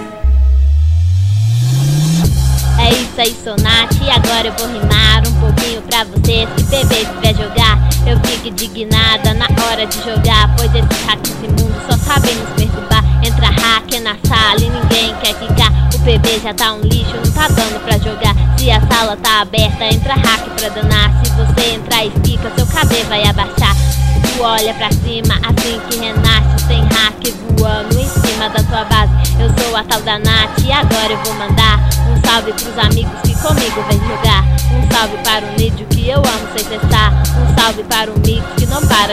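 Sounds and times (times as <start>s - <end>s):
rap beat for freestyling: 0.2s - 39.1s.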